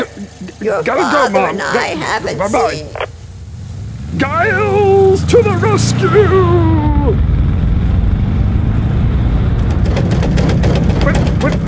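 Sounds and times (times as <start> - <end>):
car engine rumble: 0.0 - 11.6
speech: 0.2 - 3.1, 4.2 - 7.3
car flat tire flapping thump: 7.2 - 11.6.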